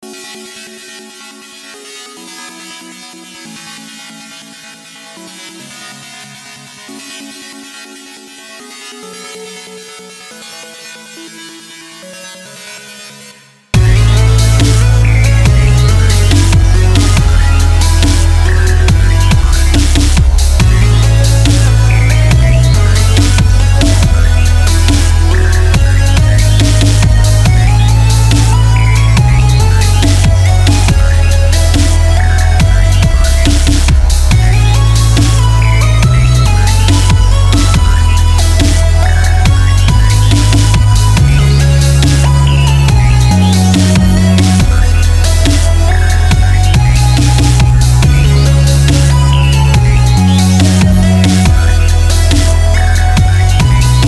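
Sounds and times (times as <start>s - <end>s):
wall of sawtooth synth waves: 13.8s - 54.0s.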